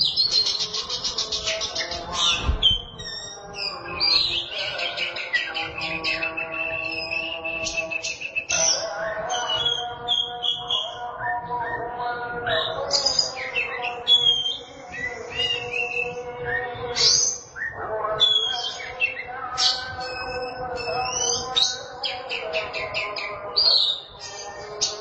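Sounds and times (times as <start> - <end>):
Oriental magpie-robin singing: 0.0 - 24.9.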